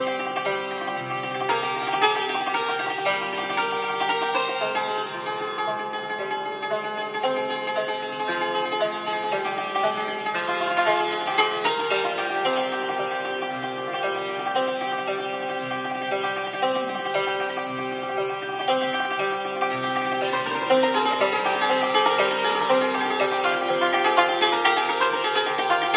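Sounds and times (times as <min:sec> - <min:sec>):
santoor solo: 0:00.0 - 0:25.9.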